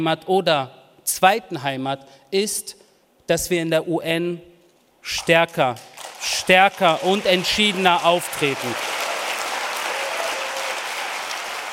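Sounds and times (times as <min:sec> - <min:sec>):
speech: 0:00.0 - 0:08.9
long audience applause: 0:05.9 - 0:11.7.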